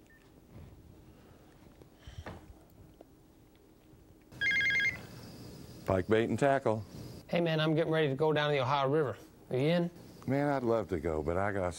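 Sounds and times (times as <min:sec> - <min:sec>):
buzzy telephone ring: 0:04.4 - 0:05.3
speech: 0:05.9 - 0:11.7.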